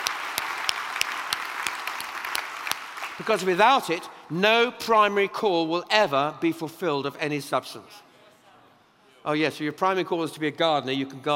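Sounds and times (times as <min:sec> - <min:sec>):
audience applause: 0:00.0 - 0:04.0
speech: 0:03.2 - 0:08.1, 0:09.2 - 0:11.3.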